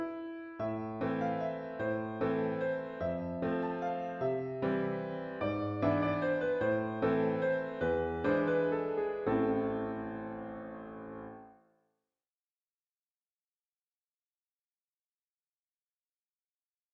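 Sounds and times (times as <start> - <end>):
waltz music: 0.0 - 11.4.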